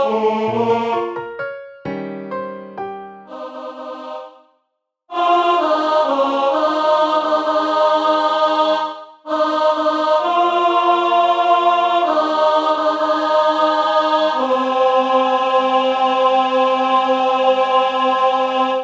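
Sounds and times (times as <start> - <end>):
tenor singing: 0.0 - 1.2, 5.1 - 18.8.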